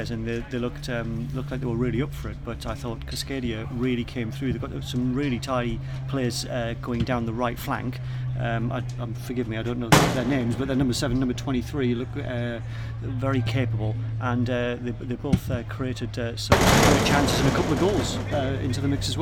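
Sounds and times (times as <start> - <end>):
speech: 0.0 - 19.2
substitutes banging on advertising hoardings behind the goal at a football ground: 9.9 - 11.0, 16.5 - 19.2.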